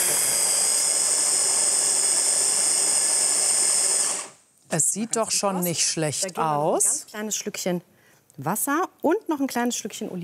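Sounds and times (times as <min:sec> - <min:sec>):
electric blender mixing food: 0:00.0 - 0:04.4
speech: 0:04.7 - 0:10.2.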